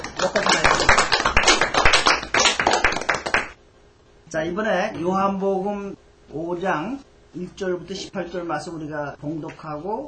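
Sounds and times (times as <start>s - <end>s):
audience applause: 0.0s - 3.6s
speech: 4.4s - 10.0s.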